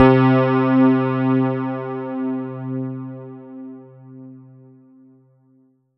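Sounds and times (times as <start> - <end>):
Alesis S4 Plus Dyna Roadz C3 patch: 0.0 - 3.4.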